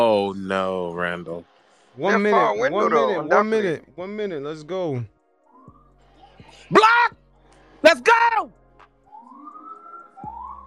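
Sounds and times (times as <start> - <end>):
speech: 0.2 - 5.1, 6.5 - 7.2, 7.8 - 8.6
police car siren wailing: 9.2 - 10.6.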